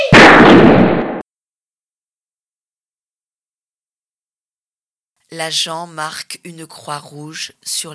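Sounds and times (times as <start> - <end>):
gunshot: 0.1 - 1.2
speech: 5.3 - 7.9.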